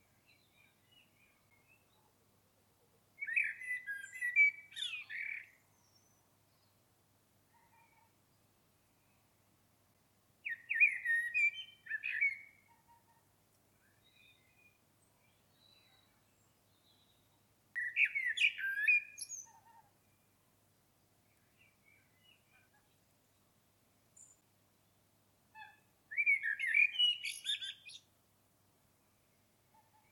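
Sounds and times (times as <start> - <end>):
common blackbird song: 0.0 - 2.2, 3.2 - 6.8, 10.4 - 20.4, 21.0 - 23.5, 24.1 - 28.1, 29.0 - 30.1.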